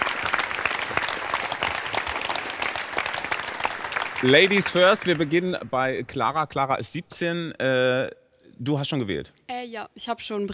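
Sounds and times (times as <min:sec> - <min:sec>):
audience applause: 0:00.0 - 0:05.8
speech: 0:04.2 - 0:10.5.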